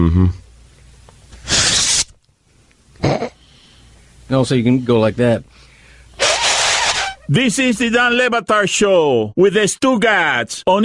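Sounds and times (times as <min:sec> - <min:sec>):
speech: 0:00.0 - 0:00.4, 0:04.3 - 0:05.7, 0:07.3 - 0:10.8
person imitating ripping paper with the mouth: 0:01.4 - 0:02.2, 0:06.2 - 0:07.3.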